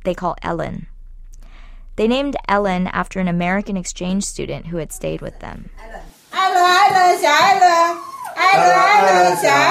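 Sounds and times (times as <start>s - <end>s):
speech: 0.0s - 0.9s, 2.0s - 9.6s
small white dog singing on command with high-pitched howls: 7.6s - 9.6s.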